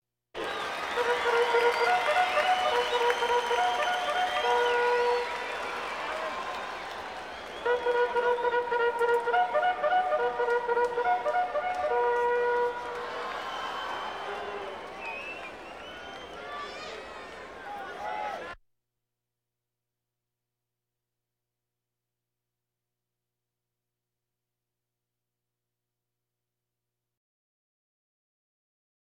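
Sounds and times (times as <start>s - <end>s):
crowds: 0.4s - 18.6s.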